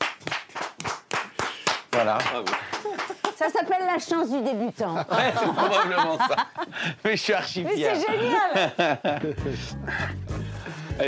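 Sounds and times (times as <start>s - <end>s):
small group clapping: 0.0s - 3.6s
speech: 2.0s - 10.1s
laughter: 4.8s - 7.1s, 8.0s - 10.0s.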